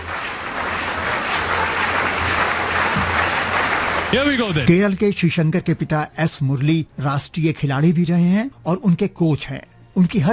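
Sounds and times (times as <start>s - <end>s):
spectators clapping in a stadium: 0.0s - 4.8s
speech: 4.1s - 10.3s.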